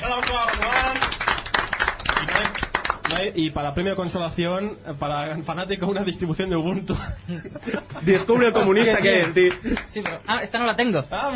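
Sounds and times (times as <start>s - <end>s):
applause: 0.0s - 3.3s, 9.0s - 10.3s
speech: 3.2s - 11.3s
laughter: 6.7s - 10.0s.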